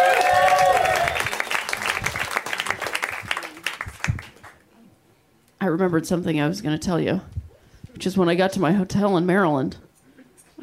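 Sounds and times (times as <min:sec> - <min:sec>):
audience applause for a comedian at a comedy show: 0:00.0 - 0:04.6
speech: 0:05.7 - 0:07.4, 0:08.0 - 0:09.8.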